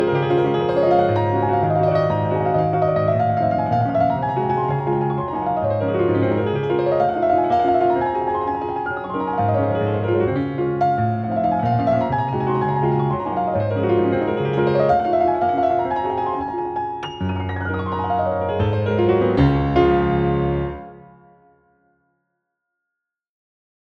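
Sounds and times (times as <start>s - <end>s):
waltz: 0.0s - 21.2s.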